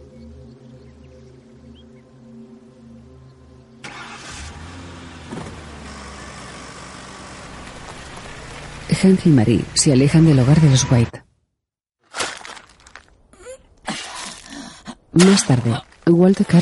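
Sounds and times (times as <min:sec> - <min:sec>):
car engine starting: 0:03.8 - 0:11.1
speech: 0:09.0 - 0:11.2, 0:15.2 - 0:16.5.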